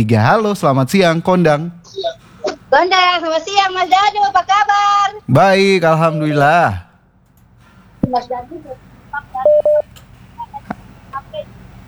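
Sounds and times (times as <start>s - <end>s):
speech: 0.0s - 6.9s, 8.0s - 9.8s
phone dialing beeps: 9.2s - 11.8s.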